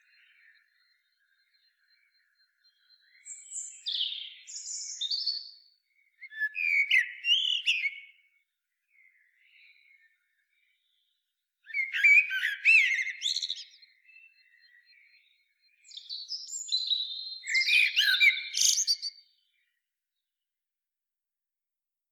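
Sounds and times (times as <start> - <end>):
Common blackbird singing: 0.0 - 8.3, 11.6 - 19.4.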